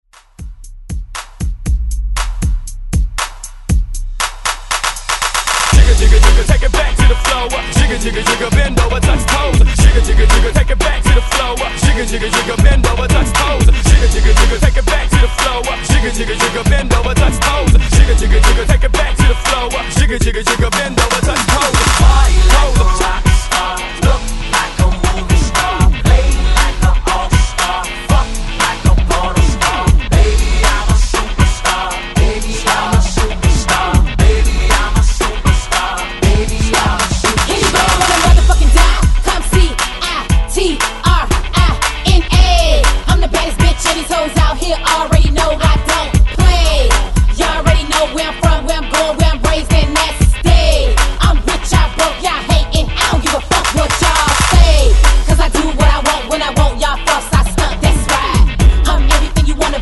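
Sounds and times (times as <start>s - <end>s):
drum beat: 0.2s - 59.8s.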